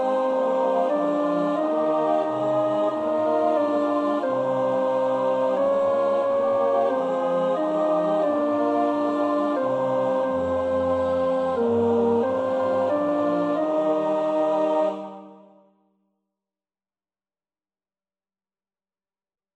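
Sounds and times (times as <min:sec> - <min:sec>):
alto voice singing a hymn: 0:00.0 - 0:15.4.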